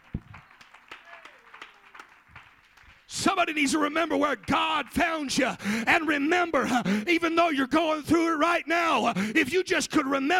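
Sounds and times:
audience clapping hands in praise: 0.0s - 5.4s
speech: 3.1s - 10.3s.

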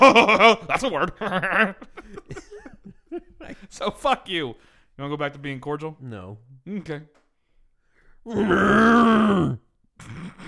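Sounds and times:
speech: 0.0s - 2.5s, 3.7s - 7.2s, 8.2s - 10.4s
laughter: 0.0s - 3.7s
person imitating a cow moo: 8.3s - 9.7s.

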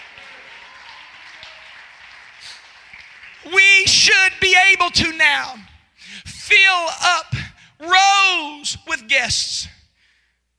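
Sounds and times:
audience clapping: 0.0s - 5.0s
speech: 3.4s - 5.6s, 6.5s - 9.8s.

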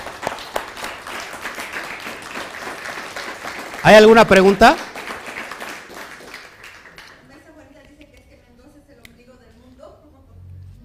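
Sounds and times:
audience applause: 0.0s - 7.3s
sharp claps: 0.0s - 7.3s
speech: 3.8s - 4.9s.

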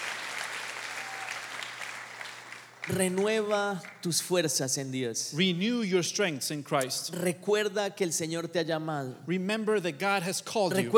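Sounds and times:
audience applause: 0.0s - 4.0s
speech: 2.9s - 10.9s.

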